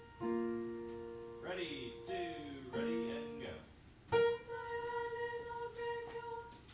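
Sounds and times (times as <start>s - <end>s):
alto voice: 0.2s - 6.5s.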